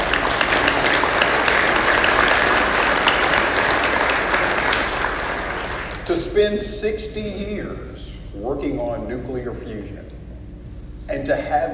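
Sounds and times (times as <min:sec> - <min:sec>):
audience applause: 0:00.0 - 0:06.1
speech: 0:06.1 - 0:10.1, 0:11.1 - 0:11.7.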